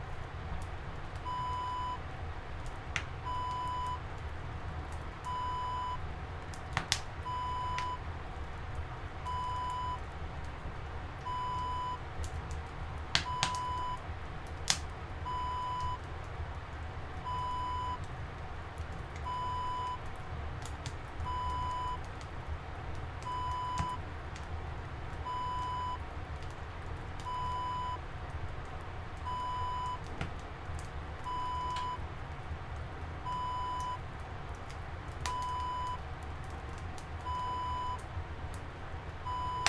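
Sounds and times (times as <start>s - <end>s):
wood burning in a sauna: 0.0s - 39.6s.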